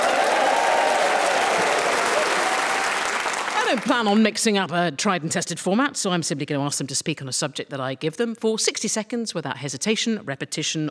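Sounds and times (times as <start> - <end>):
audience cheering and applause: 0.0 - 4.1
speech: 3.7 - 10.9.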